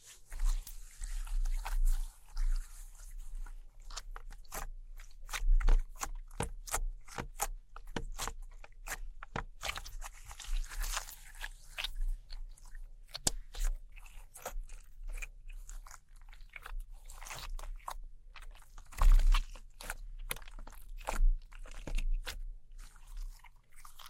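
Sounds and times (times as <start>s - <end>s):
glow sticks, slime, sticky tape and scissors crackling: 0.3s - 24.0s.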